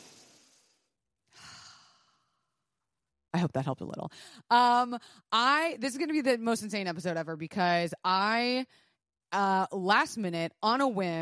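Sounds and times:
deep cleansing breaths: 1.3 - 2.4
speech: 3.4 - 11.2.

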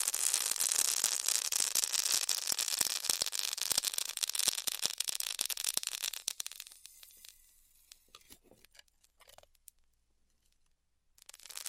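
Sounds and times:
styrofoam being heat cut hissing and crackling: 0.0 - 9.3, 11.2 - 11.6.

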